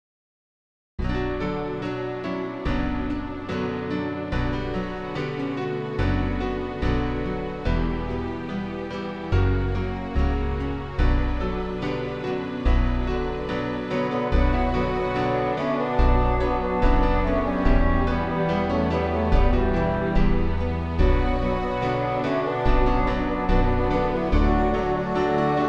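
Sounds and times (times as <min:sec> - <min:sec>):
instrumental music: 0:01.0 - 0:25.6.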